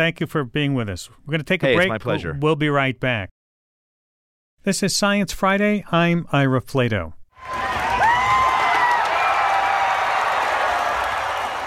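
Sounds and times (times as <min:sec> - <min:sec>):
speech: 0:00.0 - 0:03.4, 0:04.6 - 0:07.6
grandstand crowd cheering: 0:07.4 - 0:11.6.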